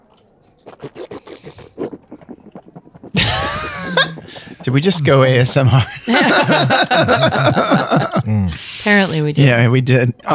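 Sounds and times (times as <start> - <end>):
slurping sips of a vanilla bean bourbon imperial stout beer: 0.0 - 5.7
laughter: 0.6 - 10.3
speech: 4.6 - 10.3.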